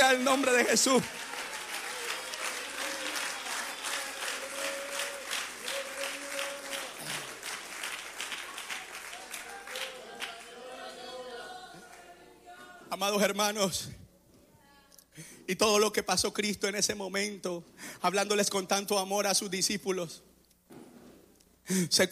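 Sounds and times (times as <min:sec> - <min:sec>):
audience clapping hands: 0:00.0 - 0:12.2
speech: 0:00.1 - 0:01.4, 0:13.0 - 0:14.0, 0:15.2 - 0:20.8, 0:21.7 - 0:22.1.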